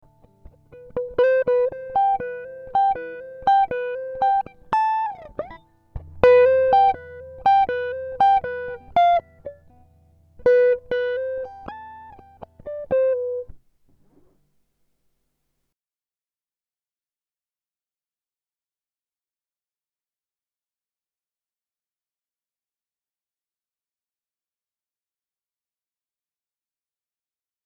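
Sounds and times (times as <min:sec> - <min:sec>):
Am60 guitar improvisation: 0:00.0 - 0:14.4.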